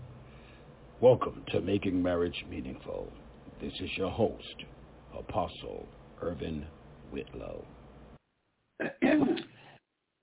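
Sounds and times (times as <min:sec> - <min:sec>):
speech: 0:01.0 - 0:07.8
throat clearing: 0:08.8 - 0:09.6.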